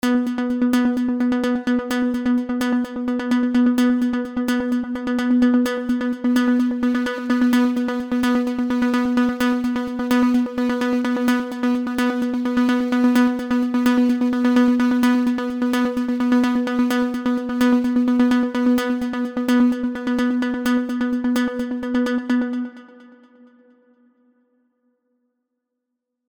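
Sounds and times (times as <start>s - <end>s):
Avenger 2 comb filter chorus effect: 0.0s - 23.1s.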